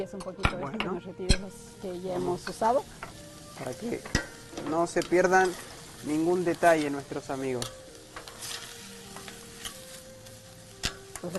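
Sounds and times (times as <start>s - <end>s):
speech: 0.0s - 7.8s
ingredients sautéing in oil in a pan over medium heat: 0.0s - 11.3s
soft stirring scrapes in a pan: 8.2s - 9.9s.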